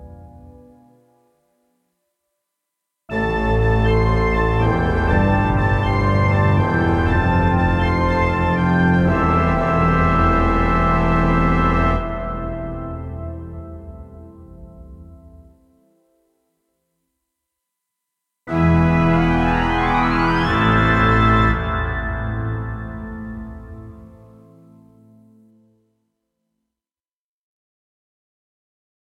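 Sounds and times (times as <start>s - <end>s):
asylum intro organ music: 3.1s - 15.5s, 18.5s - 25.2s.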